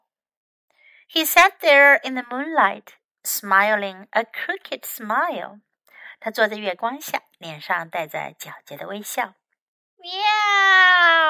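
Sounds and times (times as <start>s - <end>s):
speech: 1.1s - 9.4s
voice imitating a cat meow: 10.0s - 11.2s.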